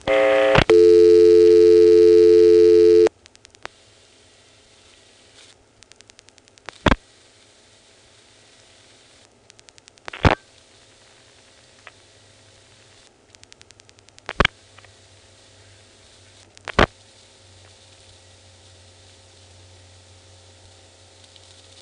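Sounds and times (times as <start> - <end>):
steady telephone line tone on a trunk to the Potomac Hospital PBX: 0.0 - 3.1.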